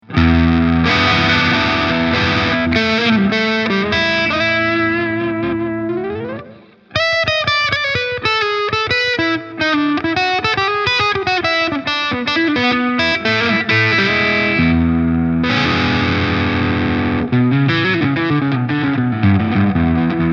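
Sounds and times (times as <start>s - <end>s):
distorted bluesy guitar: 0.0s - 20.3s.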